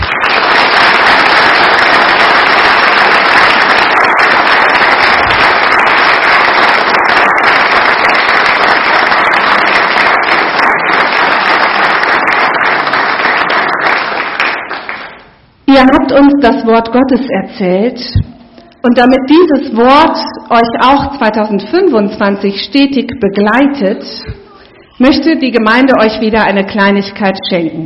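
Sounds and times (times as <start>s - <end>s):
congregation clapping: 0.0s - 15.4s
speech: 15.7s - 18.2s, 18.8s - 24.3s, 25.0s - 27.8s.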